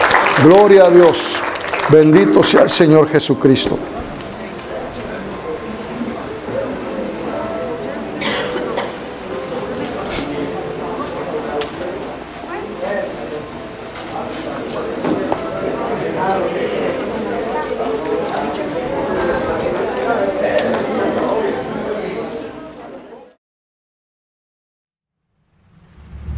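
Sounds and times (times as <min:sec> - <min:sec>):
audience applause: 0:00.0 - 0:04.6
mingling voices: 0:00.0 - 0:22.5
speech: 0:00.4 - 0:01.3, 0:01.9 - 0:04.0.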